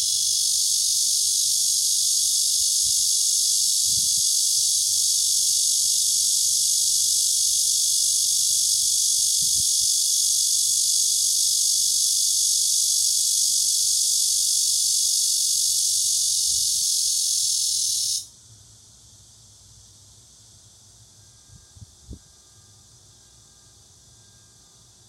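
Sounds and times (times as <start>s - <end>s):
cicada buzzing: 0.0s - 18.3s.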